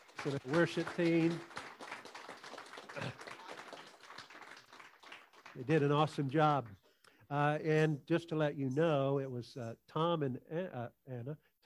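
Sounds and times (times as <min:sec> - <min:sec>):
audience applause: 0:00.0 - 0:06.2
speech: 0:00.2 - 0:01.6, 0:03.0 - 0:03.2, 0:05.6 - 0:11.6.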